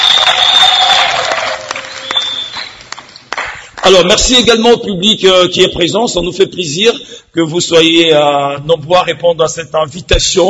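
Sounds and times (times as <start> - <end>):
audience applause: 0.0 - 3.6
speech: 3.9 - 10.4.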